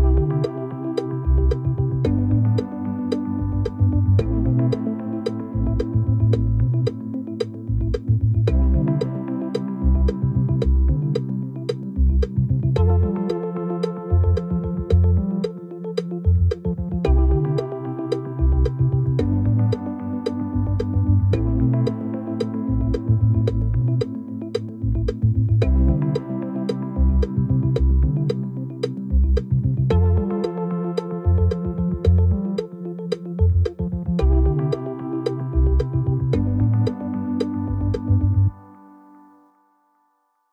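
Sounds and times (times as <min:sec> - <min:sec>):
percussion backing track: 0:00.0 - 0:38.5.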